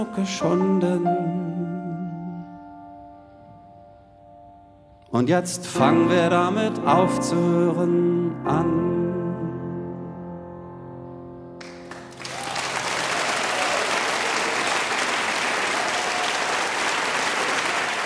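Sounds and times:
speech: 0:00.0 - 0:01.6, 0:05.1 - 0:09.0
audience applause: 0:11.6 - 0:18.0.

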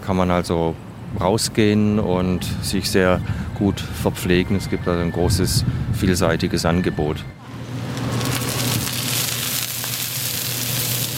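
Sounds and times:
speech: 0:00.1 - 0:07.4
oyster omelette sizzling and spattering on a hot griddle at a street food stall: 0:07.5 - 0:11.1.

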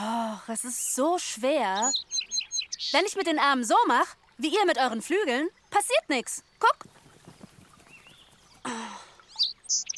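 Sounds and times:
speech: 0:00.5 - 0:02.2, 0:02.8 - 0:06.9
sparrows chirping: 0:01.2 - 0:03.3, 0:05.3 - 0:09.9.

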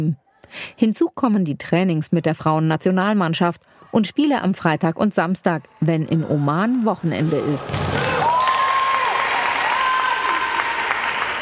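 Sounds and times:
speech: 0:00.0 - 0:08.0
shrill cheer: 0:07.7 - 0:11.4
women spectators applauding at a football match: 0:07.8 - 0:11.4.

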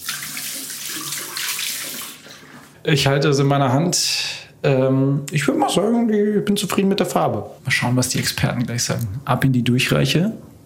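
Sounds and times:
water running from a tap during hand washing: 0:00.0 - 0:02.3
speech: 0:02.8 - 0:10.5.

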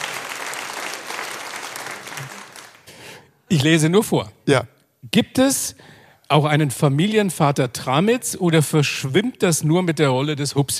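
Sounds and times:
audience applause: 0:00.0 - 0:03.0
speech: 0:03.5 - 0:10.7.

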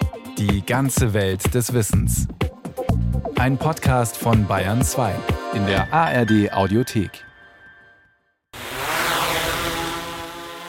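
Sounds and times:
speech: 0:00.4 - 0:07.3
multicopter drone propellers whirring: 0:08.6 - 0:10.6.

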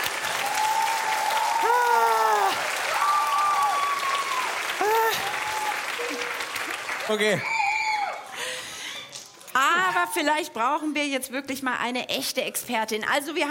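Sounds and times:
audience applause: 0:00.0 - 0:09.3
people whooping and cheering: 0:00.2 - 0:08.3
speech: 0:07.1 - 0:07.6, 0:10.1 - 0:13.4.

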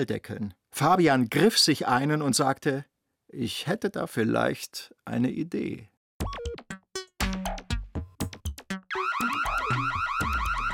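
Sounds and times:
speech: 0:00.0 - 0:06.4
electronic siren wailing: 0:08.9 - 0:10.7.

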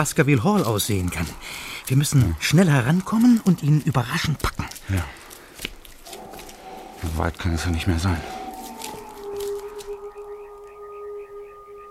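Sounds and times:
speech: 0:00.0 - 0:05.7, 0:07.0 - 0:08.4
dog howling on the moor: 0:06.0 - 0:11.8.

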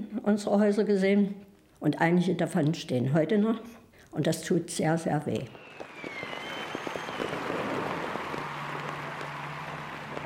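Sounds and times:
speech: 0:00.2 - 0:05.6
crowd cheering: 0:05.5 - 0:10.2.

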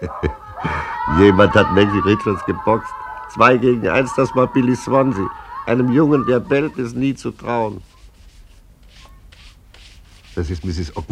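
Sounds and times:
laughter: 0:00.0 - 0:06.9
speech: 0:01.2 - 0:07.9, 0:10.4 - 0:11.1
brush scrubbing the front steps: 0:05.9 - 0:11.1.

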